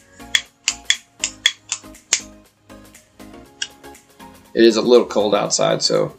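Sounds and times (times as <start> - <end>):
lighter being struck and clicking: 0.3 - 2.3
speech: 4.6 - 6.1.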